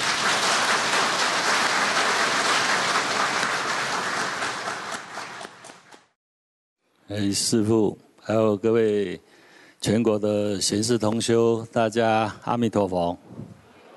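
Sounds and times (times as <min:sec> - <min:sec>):
audience applause: 0:00.0 - 0:06.0
speech: 0:07.1 - 0:13.6.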